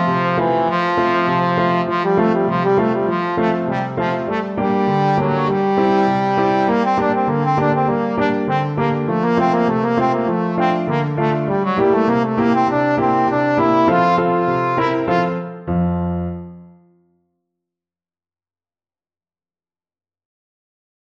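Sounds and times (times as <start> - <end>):
trombone playing a czardas: 0.0 - 16.4.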